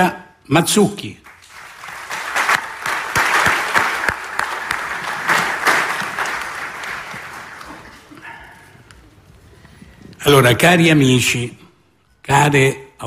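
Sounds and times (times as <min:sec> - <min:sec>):
speech: 0:00.0 - 0:01.2, 0:10.3 - 0:11.6, 0:12.3 - 0:13.0
audience applause: 0:01.3 - 0:08.7.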